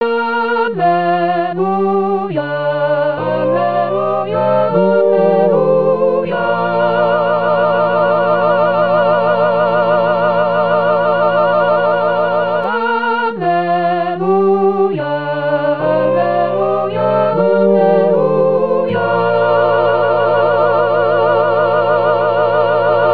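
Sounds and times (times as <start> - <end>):
choir singing gospel acclamation: 0.0 - 23.1.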